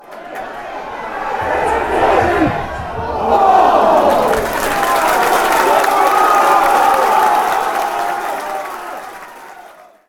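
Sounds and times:
crowd chanting: 0:00.0 - 0:10.0.

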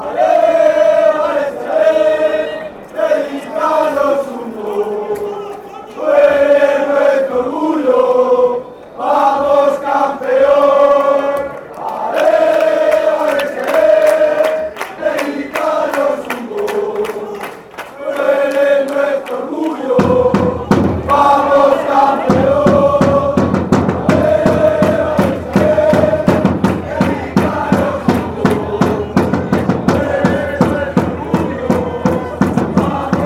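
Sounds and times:
crowd chanting: 0:00.0 - 0:33.2.

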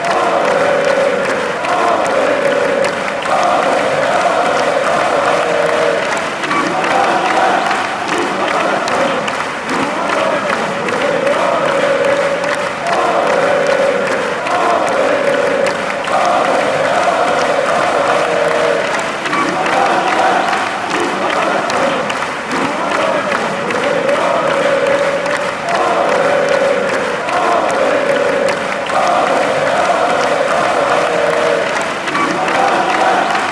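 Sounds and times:
crowd chanting: 0:00.0 - 0:33.5.

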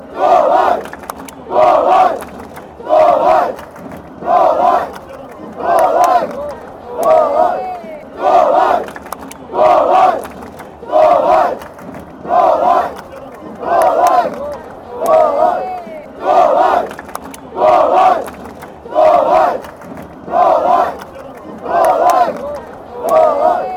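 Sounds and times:
football crowd chanting in Sao Paulo: 0:00.0 - 0:23.7.

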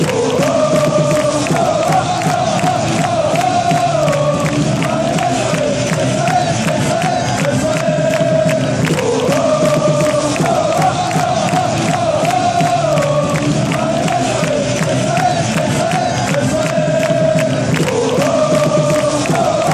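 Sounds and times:
fans chanting: 0:00.0 - 0:19.7.

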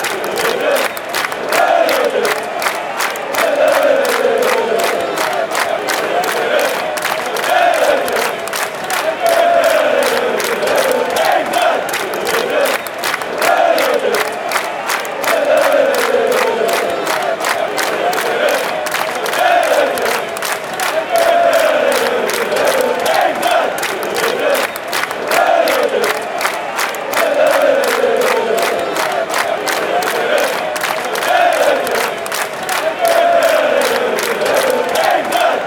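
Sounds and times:
football fans chanting: 0:00.0 - 0:35.6.

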